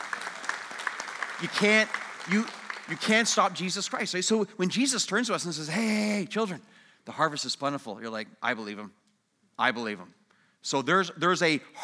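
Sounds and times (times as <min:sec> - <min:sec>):
church congregation clapping during a sermon: 0:00.0 - 0:04.2
speech: 0:01.4 - 0:09.0, 0:09.6 - 0:11.8.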